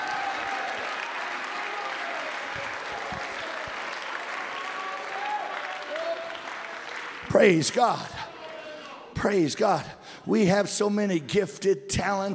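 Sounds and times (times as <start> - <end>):
crowd clapping: 0.0 - 9.7
speech: 7.4 - 8.2, 9.2 - 12.3.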